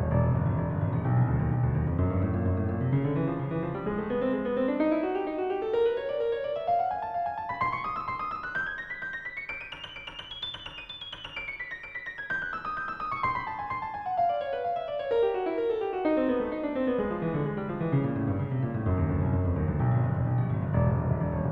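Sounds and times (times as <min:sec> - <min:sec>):
musical scales: 0:00.2 - 0:08.4, 0:12.2 - 0:21.3.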